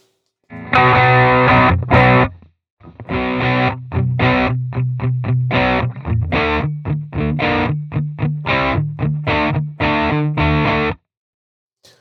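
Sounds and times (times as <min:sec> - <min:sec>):
electric guitar through overdrive pedal: 0:00.5 - 0:11.0.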